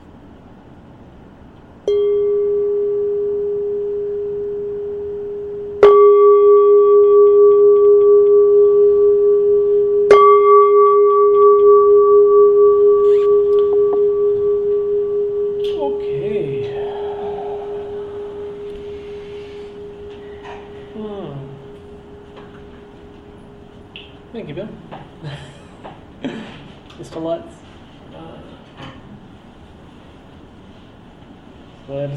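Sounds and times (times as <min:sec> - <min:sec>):
meditation gong struck: 0:01.9 - 0:24.8
person speaking: 0:15.7 - 0:20.0, 0:20.8 - 0:21.9.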